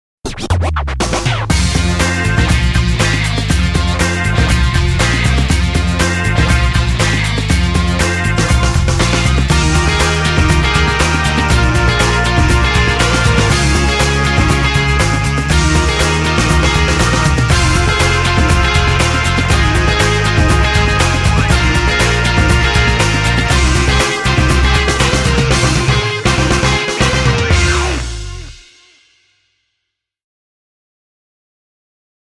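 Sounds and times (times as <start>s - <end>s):
breakbeat soul music: 0.3s - 28.6s.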